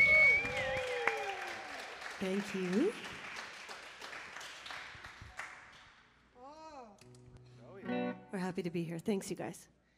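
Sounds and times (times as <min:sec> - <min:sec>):
scattered audience clapping for musical guest: 0:00.0 - 0:06.1
speech: 0:02.2 - 0:03.2, 0:08.4 - 0:09.8.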